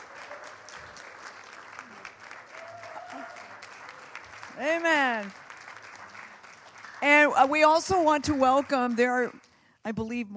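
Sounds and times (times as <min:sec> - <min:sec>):
audience cheering: 0:00.0 - 0:05.2
audience applause: 0:00.0 - 0:09.1
speech: 0:04.6 - 0:05.4, 0:07.0 - 0:10.3.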